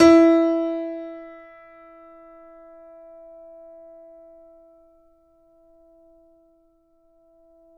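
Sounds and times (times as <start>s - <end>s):
fortissimo grand piano note E3: 0.0s - 1.9s.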